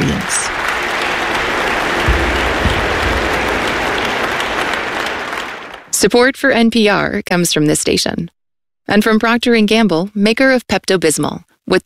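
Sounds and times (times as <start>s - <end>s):
scattered cheers: 0.0s - 5.9s
large concert hall audience applauding: 0.0s - 6.0s
speech: 6.0s - 11.8s.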